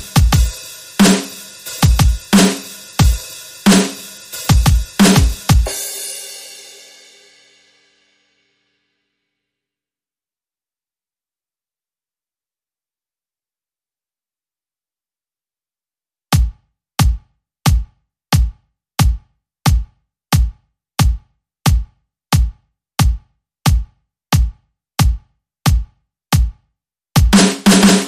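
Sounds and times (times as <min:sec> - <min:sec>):
drums: 0:00.0 - 0:07.8, 0:16.3 - 0:26.6, 0:27.2 - 0:28.0.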